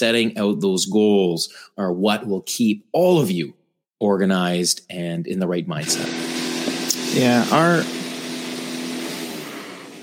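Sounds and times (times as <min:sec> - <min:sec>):
speech: 0:00.0 - 0:06.3, 0:07.1 - 0:08.0
coffee maker running: 0:05.8 - 0:10.0.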